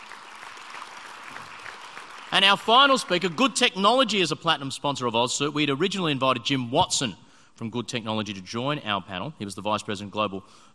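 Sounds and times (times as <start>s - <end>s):
audience applause: 0.0s - 3.4s
speech: 2.3s - 10.7s.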